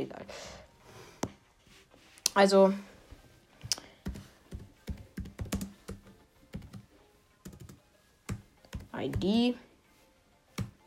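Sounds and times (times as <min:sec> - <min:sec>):
speech: 0:00.0 - 0:00.6, 0:02.4 - 0:02.9, 0:09.0 - 0:09.7
typing on a computer keyboard: 0:04.0 - 0:09.2.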